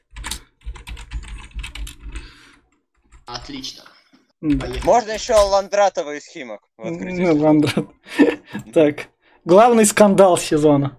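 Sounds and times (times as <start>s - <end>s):
typing notes on a computer keyboard: 0.0s - 3.6s, 4.4s - 5.6s
speech: 3.3s - 10.9s
laughter: 7.6s - 8.7s.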